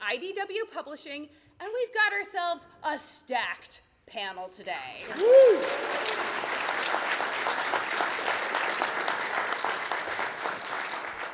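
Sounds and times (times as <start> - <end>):
speech: 0.1 - 8.5
sustained audience applause: 5.0 - 11.3.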